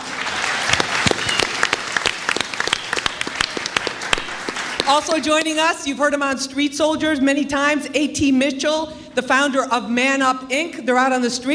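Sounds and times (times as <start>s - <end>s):
audience applause: 0.0s - 5.4s
speech: 4.9s - 11.5s.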